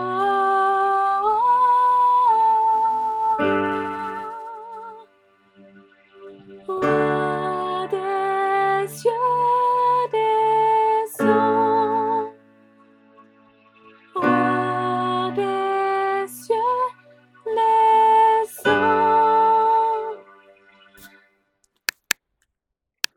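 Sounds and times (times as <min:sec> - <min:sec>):
soprano voice: 0:00.0 - 0:05.2, 0:06.6 - 0:12.7, 0:14.1 - 0:20.4.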